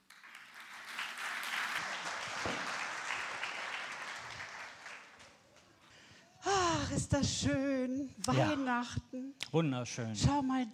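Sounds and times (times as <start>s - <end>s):
applause: 0.0s - 5.7s
speech: 6.9s - 10.7s.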